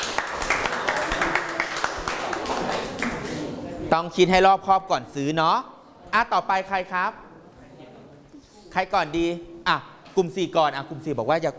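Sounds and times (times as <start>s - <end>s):
group clapping: 0.0s - 3.6s
speech: 3.9s - 7.2s, 8.7s - 11.5s.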